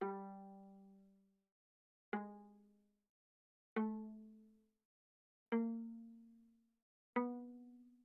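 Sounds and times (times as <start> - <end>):
viola pizzicato on the G string fortissimo: 0.0 - 1.1, 2.1 - 2.7, 3.8 - 4.4, 5.5 - 6.4, 7.2 - 8.0.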